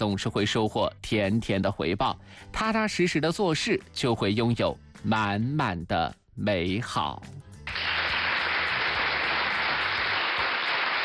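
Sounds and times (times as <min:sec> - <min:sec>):
speech: 0:00.0 - 0:07.4
audience applause: 0:07.7 - 0:11.0.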